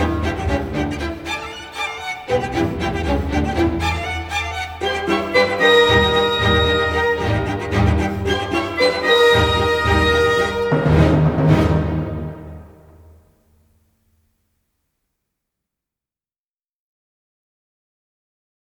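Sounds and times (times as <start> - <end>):
cello and orchestra concerto in E-flat major: 0.0 - 13.2.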